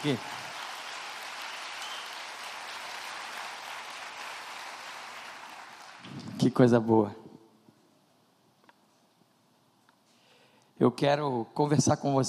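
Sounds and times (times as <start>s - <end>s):
speech: 0.0s - 0.4s, 6.4s - 7.2s, 10.8s - 12.2s
audience clapping: 0.0s - 6.6s.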